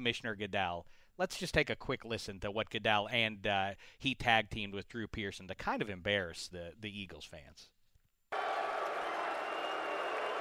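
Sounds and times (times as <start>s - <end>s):
speech: 0.0s - 7.8s
stadium crowd booing: 8.3s - 10.4s.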